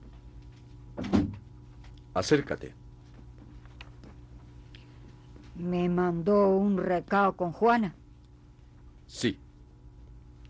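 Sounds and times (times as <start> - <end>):
office door opening and closing: 1.0 - 1.4
speech: 2.2 - 2.8, 5.6 - 8.0, 9.1 - 9.4.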